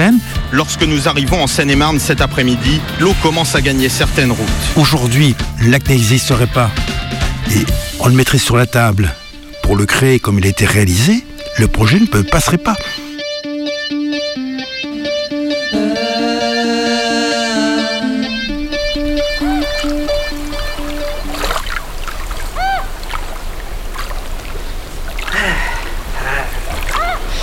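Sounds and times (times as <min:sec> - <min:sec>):
loud music: 0:00.0 - 0:08.3, 0:11.5 - 0:21.2
speech: 0:00.5 - 0:13.0
person swimming and splashing in Lac du Der in November: 0:19.3 - 0:27.4.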